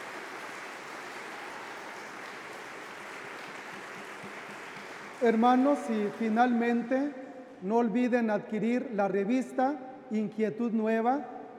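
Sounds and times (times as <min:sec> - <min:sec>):
audience applause: 0:00.0 - 0:06.9
speech: 0:05.2 - 0:11.5.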